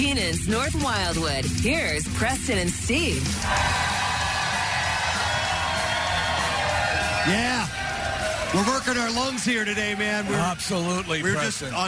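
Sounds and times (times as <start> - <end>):
speech: 0.0 - 4.0, 7.2 - 7.8, 8.5 - 11.8
crowd cheering and whooping: 3.4 - 11.8.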